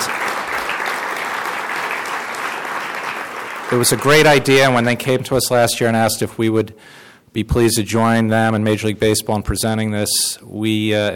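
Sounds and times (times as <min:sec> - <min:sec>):
conference audience applause: 0:00.0 - 0:04.6
speech: 0:03.7 - 0:11.1.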